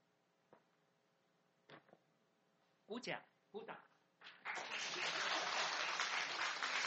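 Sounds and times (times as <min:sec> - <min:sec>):
audience applause: 0:04.4 - 0:06.8.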